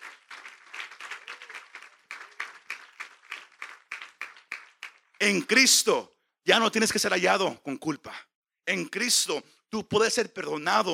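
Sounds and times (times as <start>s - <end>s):
crowd applause: 0.0s - 5.2s
speech: 5.2s - 10.9s.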